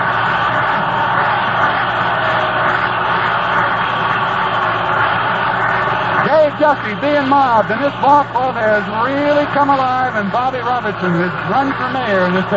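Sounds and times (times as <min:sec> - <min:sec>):
baseball stadium crowd roaring after victory: 0:00.0 - 0:12.5
speech: 0:06.6 - 0:12.5.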